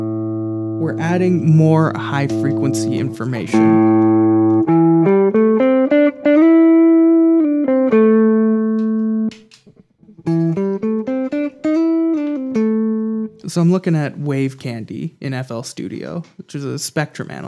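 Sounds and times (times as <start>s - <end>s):
electric guitar through distortion pedal: 0.0s - 13.5s
speech: 0.8s - 3.9s, 13.5s - 17.4s.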